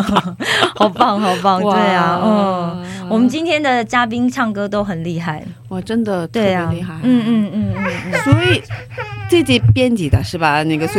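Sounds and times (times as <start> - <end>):
speech: 0.0 - 10.9
baby crying: 7.6 - 9.9, 10.7 - 10.9.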